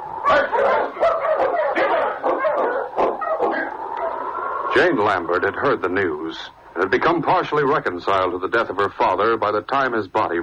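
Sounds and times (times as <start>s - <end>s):
dogs whimpering yelps: 0.0s - 4.8s
pack of sled dogs barking and yipping: 0.0s - 5.5s
speech: 4.8s - 10.4s.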